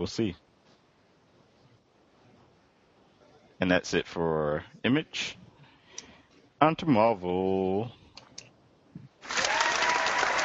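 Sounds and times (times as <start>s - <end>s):
speech: 0.0s - 0.4s, 3.6s - 5.4s, 6.6s - 8.0s
applause: 9.2s - 10.4s.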